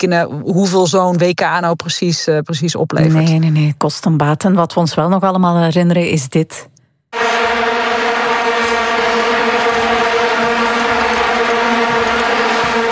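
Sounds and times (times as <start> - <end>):
speech: 0.0 - 6.7
vuvuzela plastic stadium horns blaring: 7.1 - 12.9.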